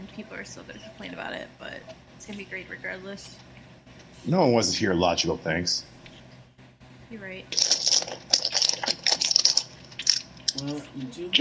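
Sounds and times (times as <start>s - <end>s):
speech: 0.2s - 3.5s, 4.2s - 5.9s, 7.1s - 8.0s, 10.6s - 11.4s
plastic being grabbed and crinkled: 7.5s - 10.9s.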